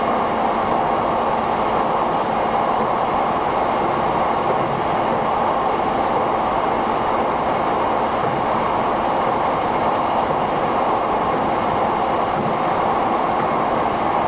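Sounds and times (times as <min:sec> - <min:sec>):
train running steadily along the track: 0:00.0 - 0:14.2.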